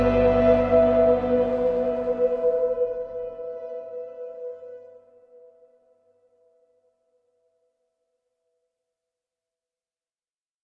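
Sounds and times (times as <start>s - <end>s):
reminiscing ambient music: 0.0s - 5.6s.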